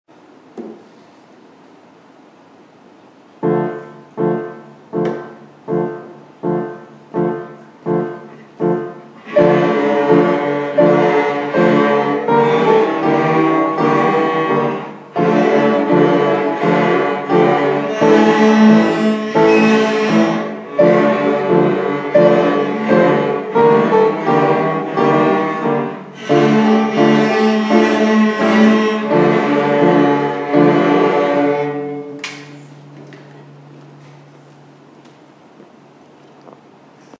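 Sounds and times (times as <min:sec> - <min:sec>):
cellos playing: 0:03.4 - 0:32.7.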